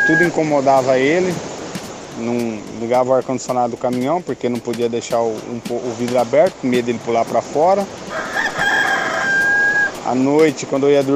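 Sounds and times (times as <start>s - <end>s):
speech: 0.1s - 1.5s, 2.2s - 8.3s, 10.1s - 11.1s
rooster crowing: 8.1s - 10.0s.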